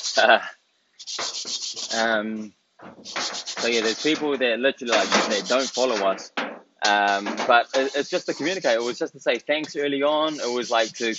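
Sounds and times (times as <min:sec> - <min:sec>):
speech: 0:00.2 - 0:11.1
scrubbing and buffing while cleaning: 0:01.0 - 0:02.2, 0:02.8 - 0:06.3, 0:06.9 - 0:09.1, 0:10.2 - 0:11.1
banging while cleaning: 0:02.8 - 0:08.1.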